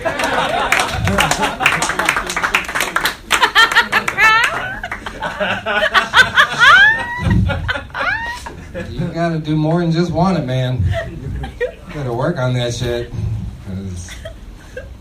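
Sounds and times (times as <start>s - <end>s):
audience clapping: 0.0s - 5.5s
laughter: 0.0s - 9.3s, 10.7s - 12.1s, 14.0s - 14.9s
speech: 9.3s - 11.0s, 12.0s - 13.2s.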